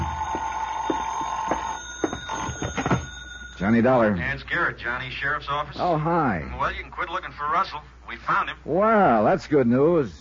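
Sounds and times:
telephone ringing: 0.0s - 4.7s
speech: 3.6s - 10.2s.

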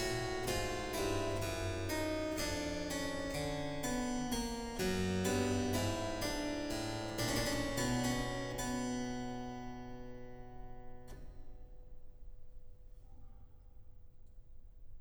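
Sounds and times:
harpsichord solo canon: 0.0s - 10.8s.

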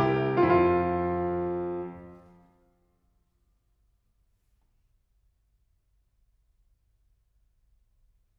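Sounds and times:
fugue in F major: 0.0s - 2.3s.

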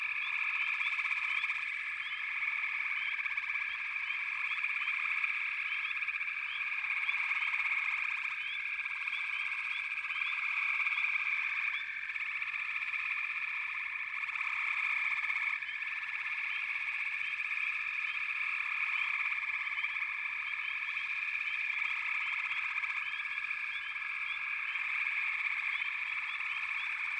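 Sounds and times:
frog chorus trilling: 0.0s - 27.1s.

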